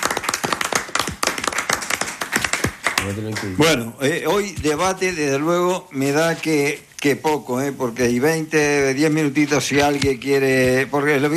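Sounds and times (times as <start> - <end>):
audience applause: 0.0 - 3.6
speech: 3.0 - 11.3.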